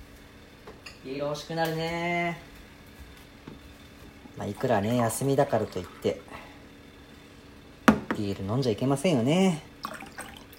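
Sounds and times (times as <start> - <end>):
speech: 1.0 - 2.5, 4.4 - 6.4, 8.2 - 9.7
tea pouring into a cup: 4.4 - 6.4, 9.8 - 10.5.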